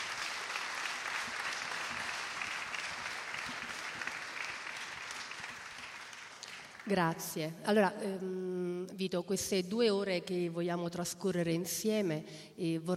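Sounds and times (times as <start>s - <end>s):
audience applause: 0.0s - 6.9s
speech: 6.9s - 12.9s.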